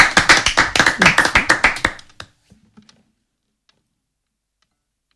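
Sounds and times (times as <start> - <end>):
audience applause: 0.0 - 2.3.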